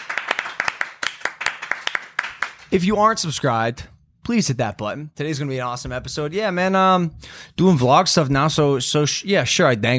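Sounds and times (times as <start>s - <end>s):
few people clapping: 0.0s - 2.8s
speech: 2.7s - 9.9s.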